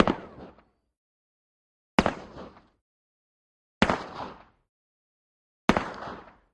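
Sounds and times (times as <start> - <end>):
Russian SKS rifle single shot: 0.0 - 0.7, 2.0 - 2.8, 3.8 - 4.6, 5.7 - 6.5.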